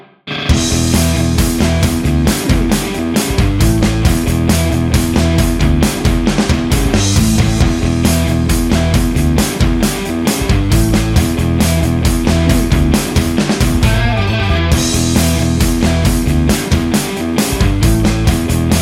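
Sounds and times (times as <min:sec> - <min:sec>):
party power music bed: 0:00.3 - 0:18.8.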